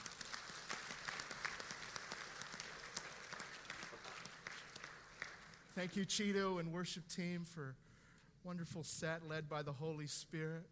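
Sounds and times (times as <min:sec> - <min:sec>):
audience clapping: 0:00.0 - 0:06.0
speech: 0:05.8 - 0:07.8, 0:08.4 - 0:10.6.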